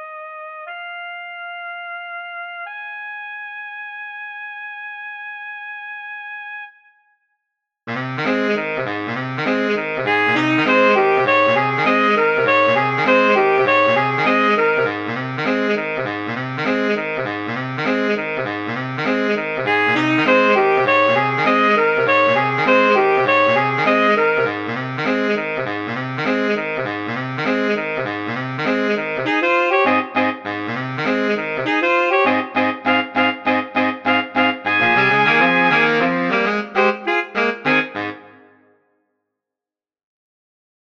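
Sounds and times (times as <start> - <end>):
mambo music: 7.9 - 38.6.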